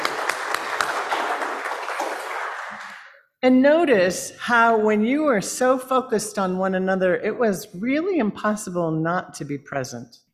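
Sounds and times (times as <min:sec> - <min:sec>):
audience applause: 0:00.0 - 0:03.2
speech: 0:03.4 - 0:10.2.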